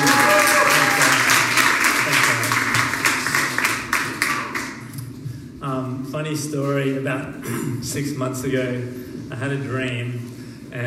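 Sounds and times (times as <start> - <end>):
audience applause: 0.0 - 4.8
speech: 6.3 - 10.8.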